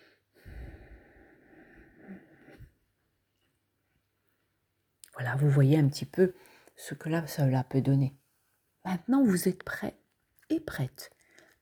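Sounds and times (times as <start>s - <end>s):
slow breathing during a meditation exercise: 0.0s - 2.8s
speech: 5.2s - 8.2s, 8.8s - 11.5s.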